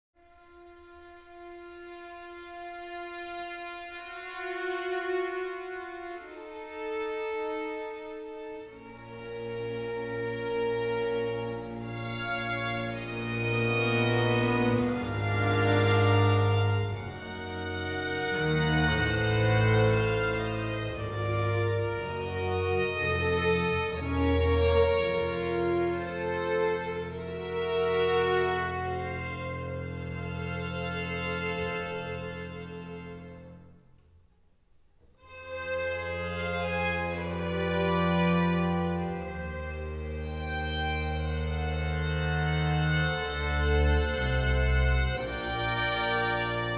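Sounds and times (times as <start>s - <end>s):
string orchestra playing an adagio in B minor: 0.2s - 34.3s, 35.0s - 46.7s.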